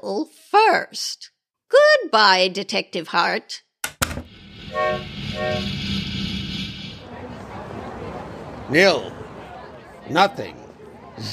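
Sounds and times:
speech: 0:00.0 - 0:03.6, 0:04.7 - 0:05.9, 0:08.7 - 0:09.2, 0:10.1 - 0:10.6, 0:11.2 - 0:11.3
train running: 0:04.3 - 0:09.9
train horn blasts: 0:04.7 - 0:05.7.

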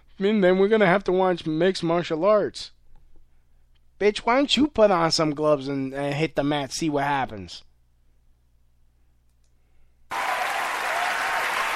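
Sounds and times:
speech: 0:00.2 - 0:02.8, 0:04.0 - 0:07.7
audience clapping and applause: 0:10.1 - 0:11.7.

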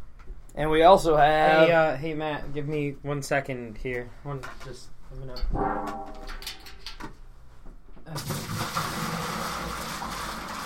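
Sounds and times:
speech: 0:00.6 - 0:06.3
hot water pouring into a container: 0:08.2 - 0:10.6.

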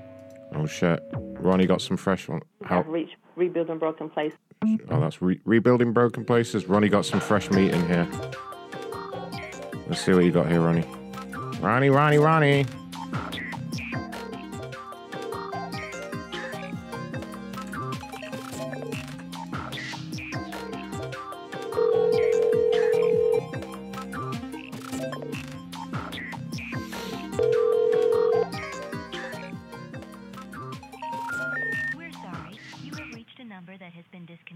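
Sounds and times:
busy music: 0:00.0 - 0:02.0, 0:04.6 - 0:33.2
speech: 0:00.6 - 0:08.6, 0:09.9 - 0:11.0, 0:11.6 - 0:12.8
telephone tones from a call to a disconnected Home Depot number: 0:21.7 - 0:23.5, 0:27.4 - 0:28.6, 0:31.0 - 0:32.0.

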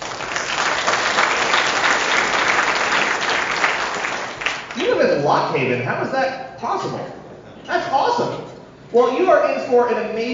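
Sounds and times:
audience applause: 0:00.0 - 0:04.8
speech: 0:05.2 - 0:10.3.

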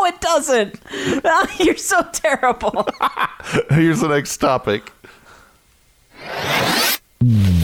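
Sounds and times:
speech: 0:00.1 - 0:04.9, 0:07.2 - 0:07.5
zipper being pulled down: 0:06.1 - 0:07.1.

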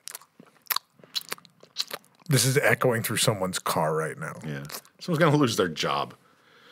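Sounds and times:
chewing Reese's Peanut Butter Cups: 0:00.0 - 0:02.3
lip smacking: 0:00.0 - 0:02.3, 0:04.6 - 0:05.0
speech: 0:02.3 - 0:06.2.

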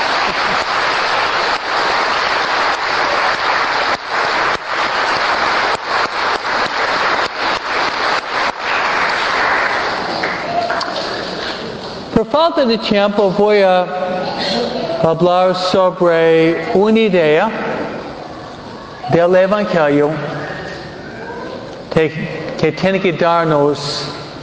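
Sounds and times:
audience applause: 0:00.0 - 0:11.7
speech: 0:12.4 - 0:17.6, 0:19.1 - 0:20.4, 0:22.0 - 0:24.1.

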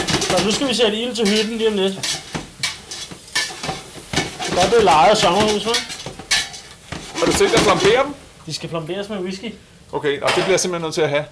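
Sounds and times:
utensil scraping and clinking against the metal pan: 0:00.0 - 0:08.6
garlic sizzling in a pan: 0:00.0 - 0:11.3
speech: 0:00.4 - 0:02.3, 0:04.6 - 0:06.0, 0:07.2 - 0:11.3.

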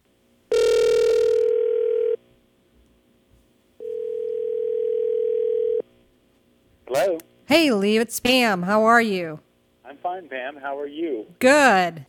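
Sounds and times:
telephone line tone while placing a call: 0:00.5 - 0:02.2, 0:03.8 - 0:05.8
speech: 0:07.5 - 0:12.0.

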